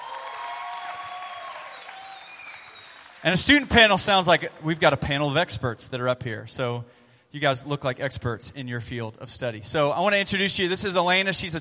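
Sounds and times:
people cheering: 0.0 - 4.7
audience applauding to welcome a student panel: 0.0 - 4.8
speech: 3.2 - 11.5.

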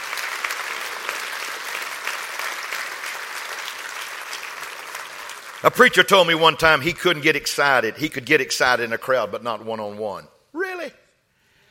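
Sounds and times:
audience clapping hands: 0.0 - 7.4
speech: 5.6 - 10.4.

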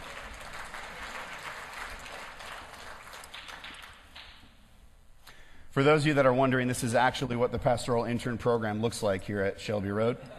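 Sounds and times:
audience applause: 0.0 - 4.4
speech: 5.8 - 10.3.

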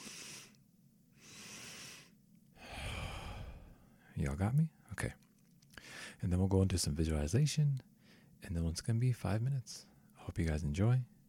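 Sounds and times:
guided meditation two-part breath, nose inhales and mouth exhale: 0.0 - 4.2, 5.7 - 6.2, 7.9 - 8.4
speech: 4.2 - 5.2, 6.2 - 11.1.

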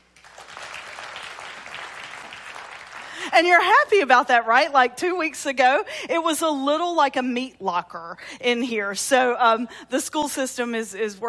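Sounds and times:
audience clapping: 0.0 - 3.5
speech: 3.3 - 11.2.

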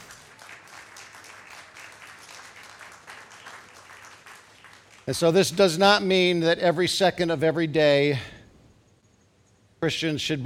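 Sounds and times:
audience clapping: 0.0 - 5.4
speech: 5.1 - 8.3, 9.8 - 10.4.

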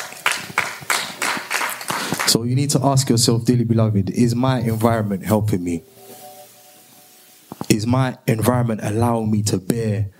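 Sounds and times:
audience clapping: 0.0 - 2.4
speech: 2.3 - 6.0, 7.8 - 10.1.

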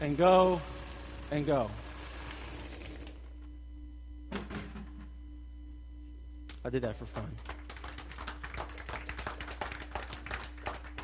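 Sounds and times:
speech: 0.0 - 1.8, 6.7 - 7.5
low steady hum: 0.0 - 11.0
audience clapping: 7.2 - 11.0.

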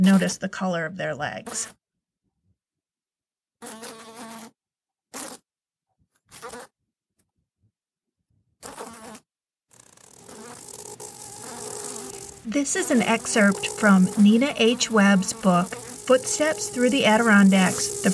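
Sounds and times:
speech: 0.0 - 1.8, 3.6 - 4.0, 12.4 - 18.1
black flies buzzing: 9.8 - 18.1.

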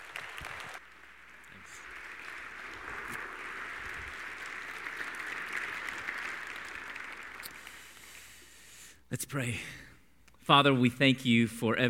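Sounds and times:
audience applause welcoming a speaker: 0.0 - 8.5
speech: 9.3 - 9.8, 10.5 - 11.8.

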